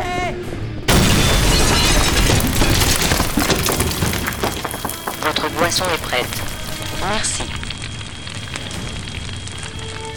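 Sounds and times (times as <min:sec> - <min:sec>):
bomb explosion in the toilets: 0:00.9 - 0:07.1
speech: 0:05.7 - 0:07.6.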